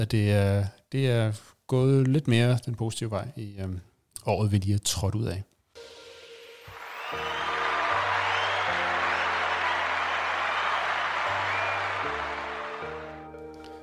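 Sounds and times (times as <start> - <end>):
speech: 0.0 - 6.0
crowd applause: 6.6 - 13.4.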